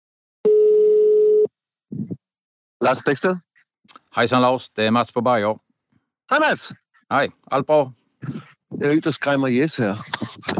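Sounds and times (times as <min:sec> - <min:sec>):
telephone ringing tone while calling someone: 0:00.5 - 0:01.5
speech: 0:02.8 - 0:05.6, 0:06.3 - 0:10.5.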